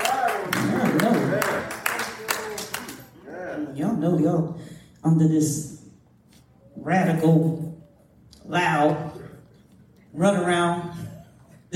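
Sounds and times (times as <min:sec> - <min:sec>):
audience hand clapping: 0:00.0 - 0:03.2
speech: 0:04.1 - 0:05.8, 0:06.8 - 0:07.6, 0:08.5 - 0:09.1, 0:10.2 - 0:11.0.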